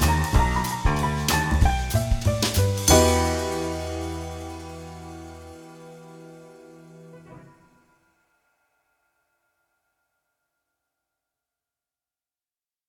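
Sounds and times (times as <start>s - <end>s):
evil jazz music: 0.0s - 7.8s.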